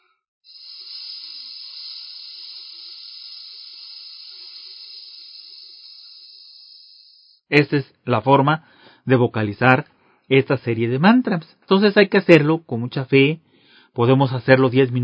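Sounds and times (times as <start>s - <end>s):
person hissing sss through closed teeth: 0.0s - 7.5s
speech: 7.5s - 15.0s.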